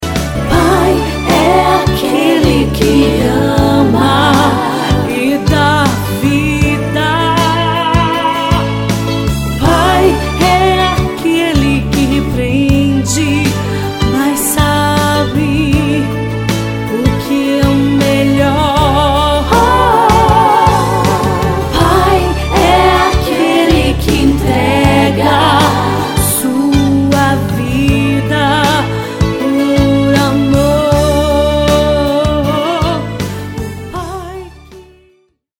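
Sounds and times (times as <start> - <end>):
music: 0.0 - 35.5.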